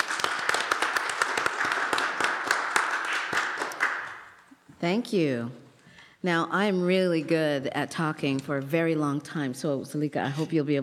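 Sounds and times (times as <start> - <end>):
audience applause welcoming a speaker: 0.0 - 4.5
speech: 4.8 - 5.6, 6.2 - 10.8.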